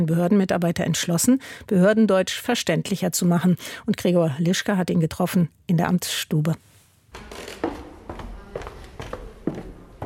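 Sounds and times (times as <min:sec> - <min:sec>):
speech: 0:00.0 - 0:07.6
footsteps on creaking wooden floorboards: 0:07.1 - 0:10.0.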